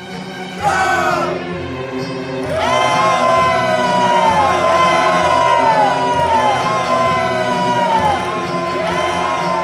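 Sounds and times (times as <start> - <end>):
army of soldiers shouting together: 0.6 - 1.4, 2.5 - 9.6.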